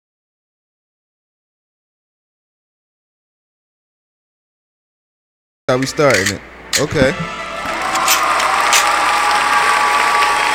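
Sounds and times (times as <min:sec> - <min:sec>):
speech: 0:05.7 - 0:07.4
clapping sound effect: 0:07.6 - 0:10.5.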